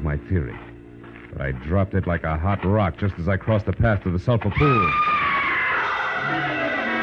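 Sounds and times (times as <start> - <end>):
speech: 0.1 - 0.7, 1.3 - 5.2
person screaming: 4.6 - 6.9.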